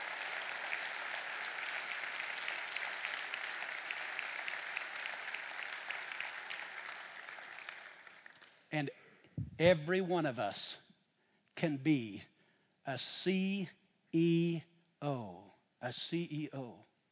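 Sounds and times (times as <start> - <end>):
audience faint clapping for a pastor: 0.0 - 8.6
speech: 8.7 - 9.0, 9.6 - 10.8, 11.6 - 16.9.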